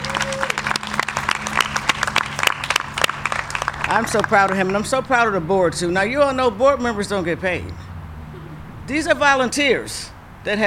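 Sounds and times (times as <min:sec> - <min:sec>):
crowd applause: 0:00.0 - 0:04.8
speech: 0:03.9 - 0:07.8, 0:08.9 - 0:10.6.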